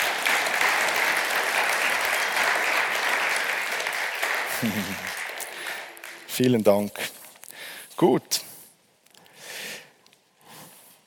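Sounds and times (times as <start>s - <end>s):
audience applause: 0.0s - 6.5s
speech: 4.6s - 5.2s, 6.4s - 7.2s, 8.0s - 8.4s.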